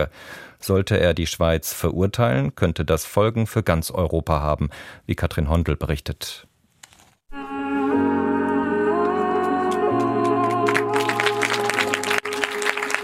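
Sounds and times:
speech: 0.0s - 6.5s
sustained orchestral-style music with steady bass notes: 7.3s - 13.0s
cinema audience applause: 9.7s - 13.0s.

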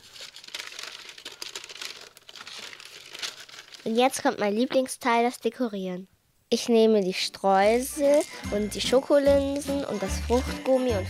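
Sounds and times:
baking paper crinkling as chocolate is poured: 0.0s - 4.8s, 7.7s - 11.0s
speech: 3.8s - 11.0s.

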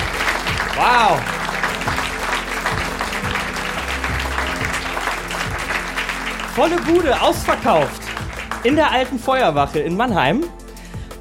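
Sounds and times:
audience applause in a concert hall: 0.0s - 9.3s
speech: 0.8s - 1.3s, 6.6s - 8.0s, 8.6s - 10.6s.

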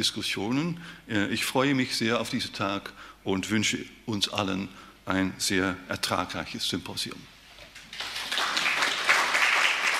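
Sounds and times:
speech: 0.0s - 7.3s
live audience applause: 7.9s - 9.9s.

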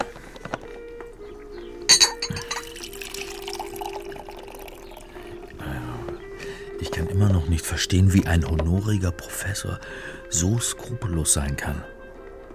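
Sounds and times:
china clinking: 1.9s - 4.0s
coffee being poured into a cup: 2.3s - 5.6s
speech: 6.8s - 12.0s.

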